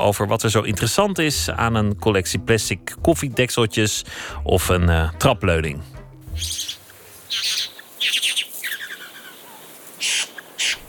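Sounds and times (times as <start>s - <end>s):
speech: 0.0s - 6.7s
bowerbird calls: 6.3s - 10.8s.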